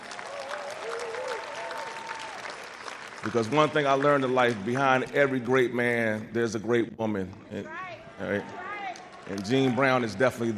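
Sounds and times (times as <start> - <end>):
round of applause for a speaker's wife during a tribute speech: 0.0 - 5.4, 8.3 - 10.5
speech: 3.2 - 8.6, 9.2 - 10.5.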